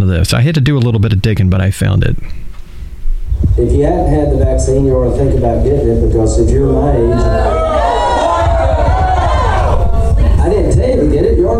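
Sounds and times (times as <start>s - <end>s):
speech: 0.0s - 2.5s, 3.6s - 7.8s, 11.0s - 11.5s
crowd murmur and roar from a played video: 4.5s - 11.5s.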